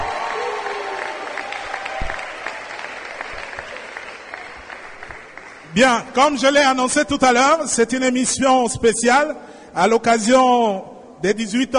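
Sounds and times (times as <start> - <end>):
crowd applauding: 0.0 - 6.3
speech: 5.8 - 11.7.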